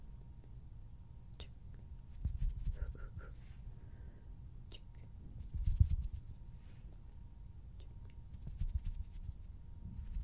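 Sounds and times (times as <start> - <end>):
hand sounds and finger fluttering, rustling and rubbing: 2.1 - 3.0, 5.4 - 7.0, 8.3 - 10.2.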